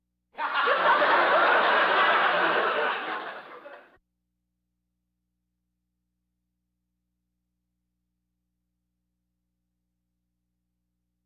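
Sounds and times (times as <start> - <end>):
audience laughter: 0.4 - 4.0.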